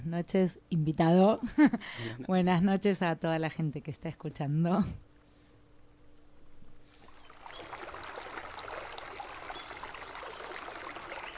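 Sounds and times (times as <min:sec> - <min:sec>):
speech: 0:00.1 - 0:05.1
running stream water babbling: 0:07.0 - 0:11.3.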